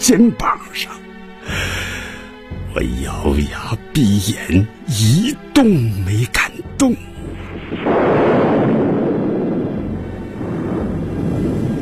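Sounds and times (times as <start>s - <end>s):
speech: 0.0s - 1.0s, 2.8s - 7.1s, 7.7s - 8.8s
thunder crack and rumble: 7.4s - 11.8s.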